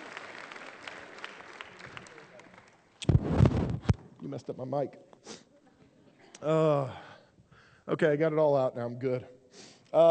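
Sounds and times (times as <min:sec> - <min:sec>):
audience applause: 0:00.0 - 0:02.9
speech: 0:04.3 - 0:05.1, 0:06.4 - 0:07.0, 0:07.9 - 0:10.0.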